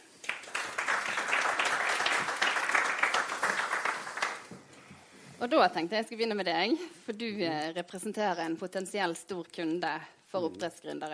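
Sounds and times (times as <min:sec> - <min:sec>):
audience applause: 0:00.1 - 0:04.6
speech: 0:05.4 - 0:11.1.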